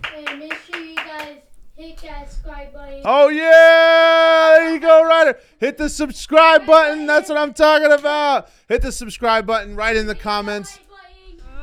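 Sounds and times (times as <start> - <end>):
hand claps: 0.0 - 1.4
speech: 1.3 - 10.8.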